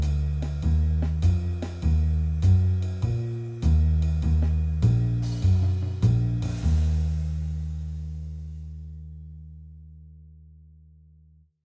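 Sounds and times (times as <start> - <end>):
minor 251 chord progression Cm Ebm: 0.0 - 8.0.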